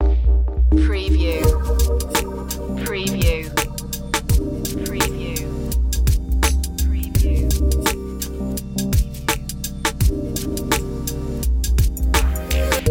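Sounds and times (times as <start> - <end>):
abstract chill music: 0.0 - 12.8.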